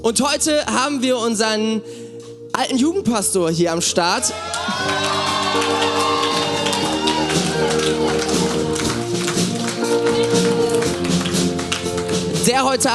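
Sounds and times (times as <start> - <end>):
speech: 0.0 - 6.6, 12.4 - 12.9
cheering: 4.2 - 8.9
audience applause: 4.4 - 12.3
sustained musical tones: 4.8 - 12.1.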